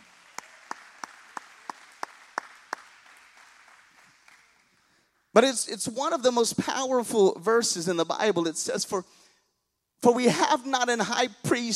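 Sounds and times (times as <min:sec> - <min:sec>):
hand claps: 0:00.0 - 0:04.9
speech: 0:05.4 - 0:09.2, 0:10.0 - 0:11.7.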